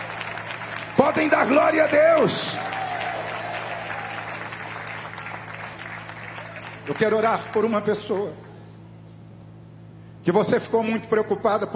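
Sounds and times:
audience clapping hands: 0.0s - 8.4s
speech: 1.0s - 2.9s, 6.9s - 8.5s, 10.3s - 11.7s.

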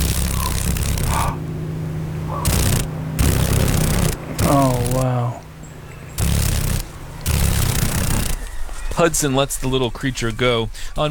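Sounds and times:
paddle-tailed darner dragonfly wings vibrating rapidly: 0.0s - 8.7s
speech: 9.0s - 11.0s.

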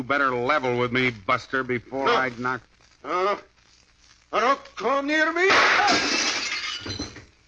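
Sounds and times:
speech: 0.0s - 3.5s, 4.3s - 7.1s
gunshot: 5.5s - 6.1s
window glass shattering: 5.5s - 7.3s.

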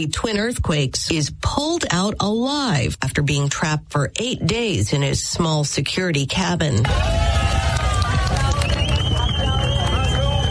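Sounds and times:
speech: 0.0s - 7.5s
hundreds of people cheering a rescued man: 6.8s - 10.4s.

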